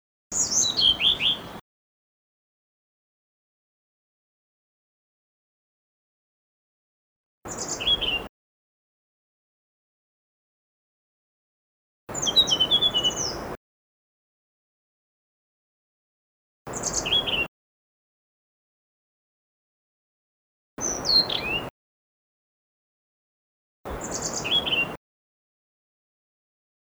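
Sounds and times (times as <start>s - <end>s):
blue-throated blue flycatcher song: 0.3s - 1.6s, 7.5s - 8.3s, 12.1s - 13.6s, 16.7s - 17.5s, 23.9s - 25.0s.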